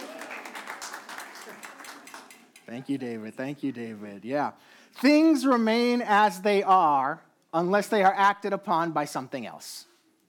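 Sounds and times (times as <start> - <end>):
audience applause: 0.0 - 2.6
speech: 2.7 - 9.9.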